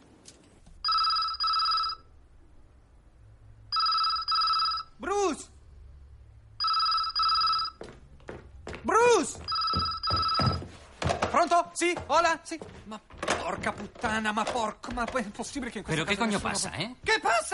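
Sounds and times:
telephone bell ringing: 0.8 - 2.2, 3.7 - 5.0, 6.6 - 7.8, 9.4 - 10.8
thumps and rustling: 9.7 - 15.6
speech: 11.8 - 17.5.

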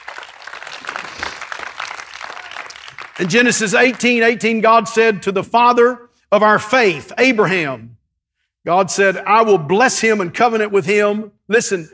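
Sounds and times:
audience clapping hands: 0.0 - 4.5
speech: 3.2 - 8.0, 8.6 - 11.9.

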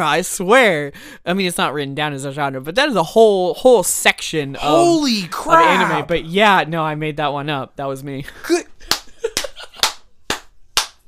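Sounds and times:
speech: 0.0 - 8.7
hand claps: 8.8 - 11.0.

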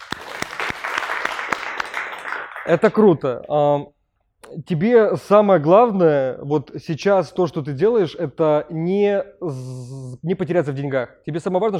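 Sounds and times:
applause: 0.0 - 3.2
speech: 2.6 - 11.7.

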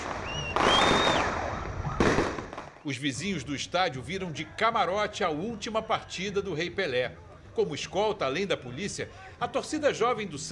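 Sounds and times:
high whistling firework rockets streaking upward: 0.0 - 2.9
loud sharp firework bursts with crackling hissing tails: 0.0 - 2.9
speech: 2.8 - 10.4.

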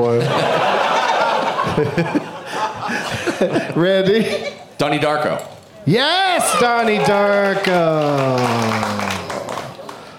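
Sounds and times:
speech: 0.0 - 0.5, 1.8 - 9.2
laughter: 0.0 - 4.8, 6.4 - 10.1
audience applause: 6.4 - 10.1.

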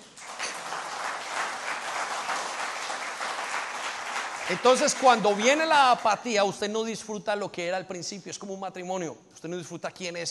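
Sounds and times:
crowd applause: 0.0 - 5.7
speech: 4.5 - 10.2.

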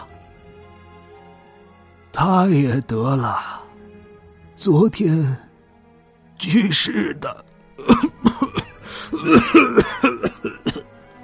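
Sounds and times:
speech: 2.2 - 3.6, 4.6 - 5.4, 6.4 - 10.8
old man coughing violently with phlegm rattling in his throat: 7.8 - 10.9.

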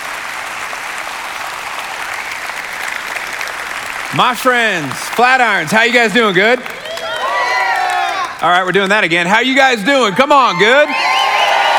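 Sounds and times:
audience applause welcoming a guest speaker: 0.0 - 11.7
speech: 4.1 - 6.8, 8.4 - 11.1.

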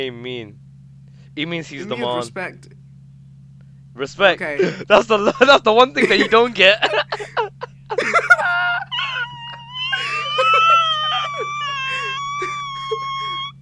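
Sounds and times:
speech: 0.0 - 0.6, 1.4 - 2.8, 4.0 - 8.6
laughter: 4.4 - 13.5
voice imitating a dying dolphin: 8.9 - 13.6.

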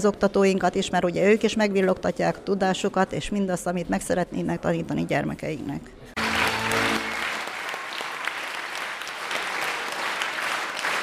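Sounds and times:
speech: 0.0 - 6.2
audience applause after folk dance performance: 6.2 - 11.0.

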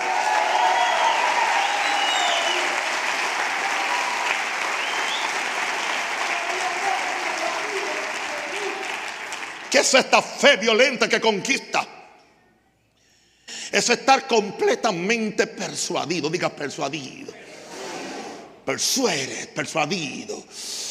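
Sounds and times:
audience applause: 0.0 - 10.0
speech: 9.8 - 11.8, 13.8 - 17.4, 18.7 - 20.8.

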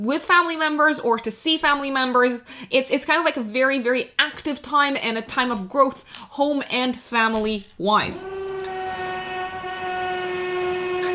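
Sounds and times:
speech: 0.0 - 8.4
power drill whining: 8.1 - 11.1.

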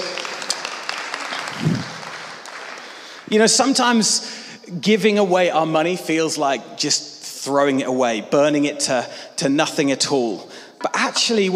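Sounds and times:
audience applause: 0.0 - 3.7
speech: 3.3 - 11.5.

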